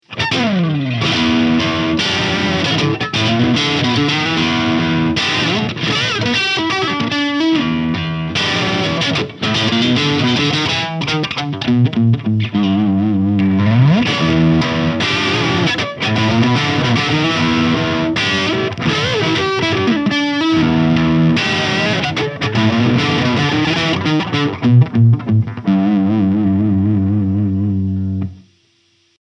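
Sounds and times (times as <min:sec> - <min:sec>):
ESP LTD Eclipse '87 Rainbow Crackle electric guitar with crunch tone: 0:00.0 - 0:29.1.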